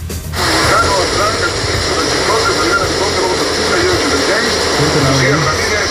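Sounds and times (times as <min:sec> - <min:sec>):
heavy rain: 0:00.4 - 0:05.8.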